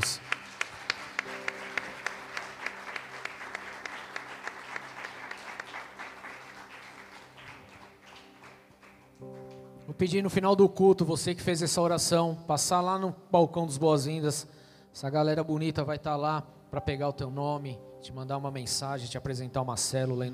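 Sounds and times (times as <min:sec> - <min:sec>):
audience applause: 0:00.0 - 0:09.6
low sustained musical tone: 0:01.2 - 0:10.7
speech: 0:10.0 - 0:20.3.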